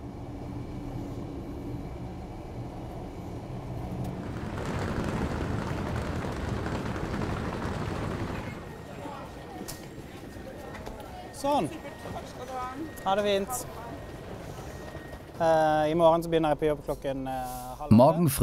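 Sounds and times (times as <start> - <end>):
Bergenbahn train arriving at station: 0.0 - 18.4.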